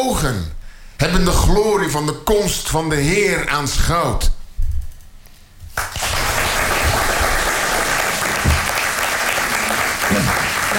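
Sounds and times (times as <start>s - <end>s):
speech: 0.0s - 4.4s, 10.1s - 10.7s
audience applause: 5.8s - 10.7s.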